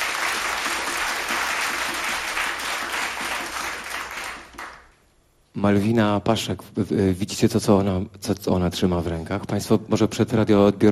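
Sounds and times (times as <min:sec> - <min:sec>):
audience applause: 0:00.0 - 0:04.9
speech: 0:05.6 - 0:10.8.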